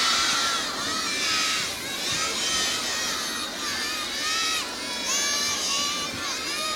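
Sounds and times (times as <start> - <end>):
girls chanting salawat at a religious coming-of-age celebration: 0.0 - 6.7.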